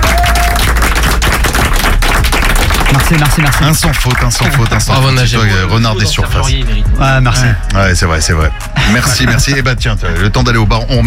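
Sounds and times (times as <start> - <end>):
crowd cheering: 0.0 - 3.7
audience applause: 0.0 - 4.8
speech: 3.0 - 11.0.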